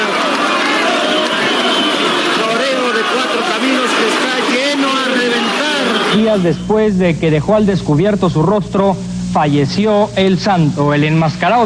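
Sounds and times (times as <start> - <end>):
crowd ovation: 0.0 - 6.6
speech: 6.3 - 11.6.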